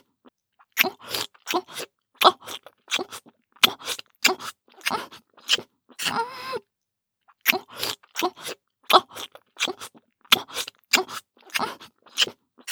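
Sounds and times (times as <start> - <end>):
kissing sound: 0.8 - 5.6, 7.5 - 12.3.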